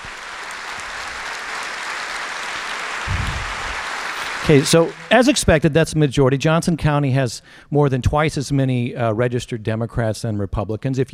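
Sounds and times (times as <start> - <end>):
large auditorium audience clapping: 0.0 - 5.8
speech: 4.5 - 11.1.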